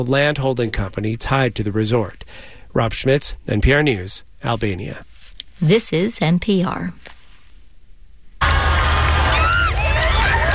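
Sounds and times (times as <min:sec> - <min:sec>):
speech: 0:00.0 - 0:07.2
street crowd cheering for the Pope: 0:08.4 - 0:10.5.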